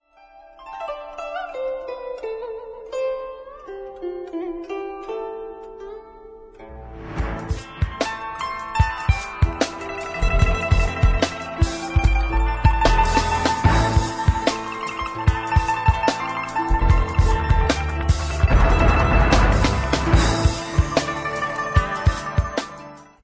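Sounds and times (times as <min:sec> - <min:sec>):
Chinese jazz music: 0:06.6 - 0:23.0.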